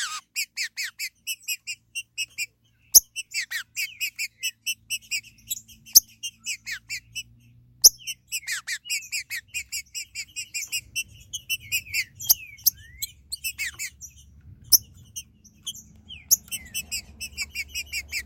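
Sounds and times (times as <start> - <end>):
green-winged saltator singing: 0.0 - 18.2.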